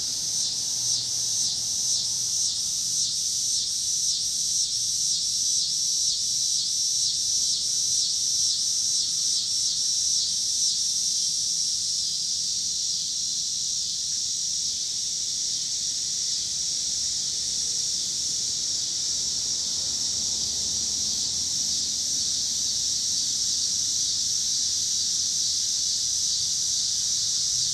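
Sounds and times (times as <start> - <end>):
cicadas chorus: 0.0 - 27.7
low rumble of passing cars: 18.9 - 23.9.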